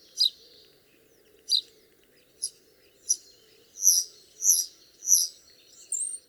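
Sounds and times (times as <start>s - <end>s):
starling singing: 0.2s - 0.4s, 2.4s - 6.2s.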